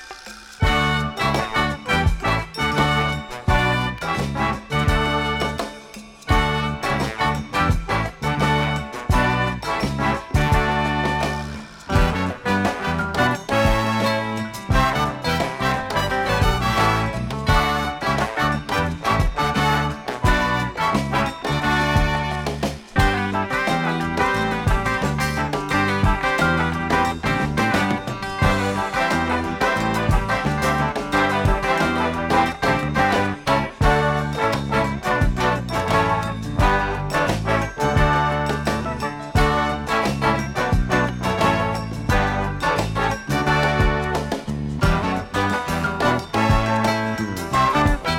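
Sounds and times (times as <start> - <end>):
jig tune: 0.6 - 48.1.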